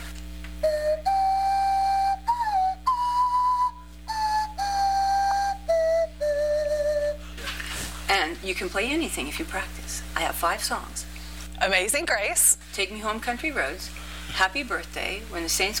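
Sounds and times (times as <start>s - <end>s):
breath blown across a pop bottle mouth with wiggling tongue: 0.6s - 7.4s
speech: 8.5s - 15.7s.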